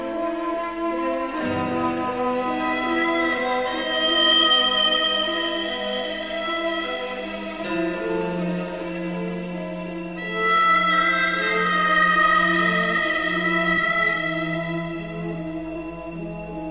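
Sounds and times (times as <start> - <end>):
ambient harmonica: 0.0 - 16.6.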